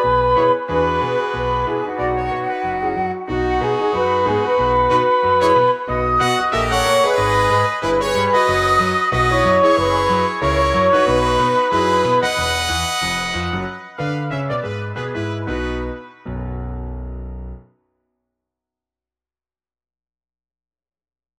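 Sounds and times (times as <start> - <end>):
piano: 0.0 - 17.8
band playing: 4.8 - 16.6.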